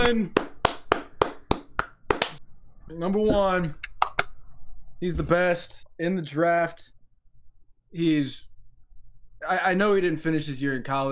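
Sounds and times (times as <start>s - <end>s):
hand clapping: 0.0s - 2.4s, 3.8s - 4.3s
speech: 0.1s - 0.4s, 2.9s - 3.8s, 5.0s - 6.9s, 7.9s - 8.5s, 9.4s - 11.1s.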